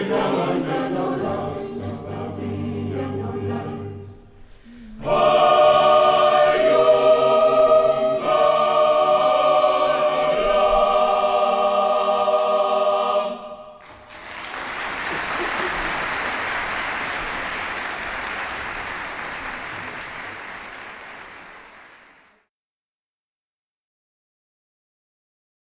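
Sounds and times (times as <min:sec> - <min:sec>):
mixed choir singing: 0:00.0 - 0:13.8
laughter: 0:14.8 - 0:17.4.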